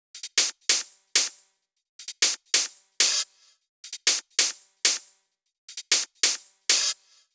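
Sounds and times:
130 BPM drum kit: 0:00.2 - 0:01.4, 0:02.0 - 0:03.3, 0:03.9 - 0:05.1, 0:05.7 - 0:07.1.

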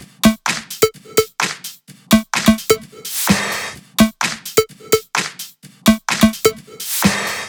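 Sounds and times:
Dogde drum kit beat: 0:00.0 - 0:07.4.

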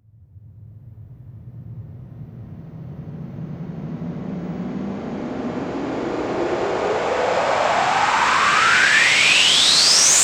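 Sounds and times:
long sweeps: 0:04.9 - 0:10.2.

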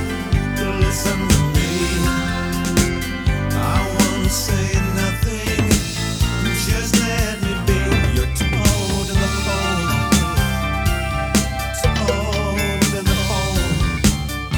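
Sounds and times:
drums: 0:00.0 - 0:14.5.

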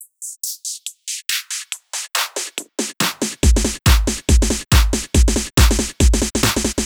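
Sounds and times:
drum fill at 140 BPM: 0:03.0 - 0:06.8.

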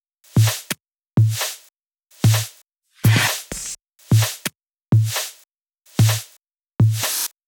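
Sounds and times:
drums: 0:00.3 - 0:07.4.

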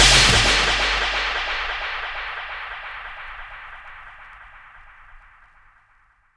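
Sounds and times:
downlifter effect: 0:00.0 - 0:03.4.

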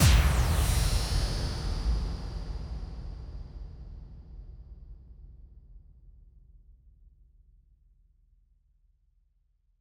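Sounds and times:
bass drum kick with reverb: 0:00.0 - 0:05.6.

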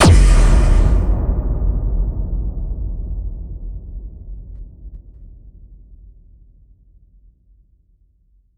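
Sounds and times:
bass drum kick with reverb: 0:00.0 - 0:05.5.

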